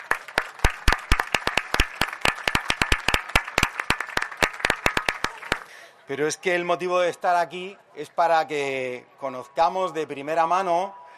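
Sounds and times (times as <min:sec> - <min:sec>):
audience applause: 0:00.0 - 0:05.8
speech: 0:06.1 - 0:11.0.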